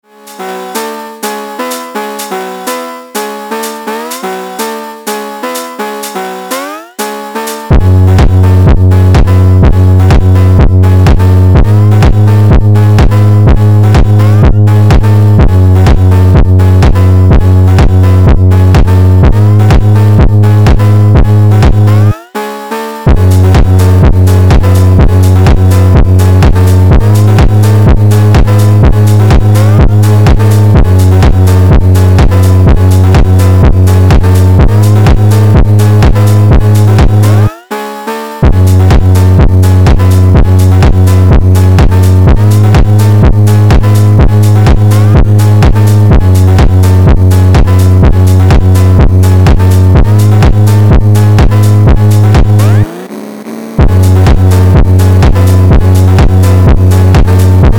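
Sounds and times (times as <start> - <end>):
phonk music: 0.0 - 57.7.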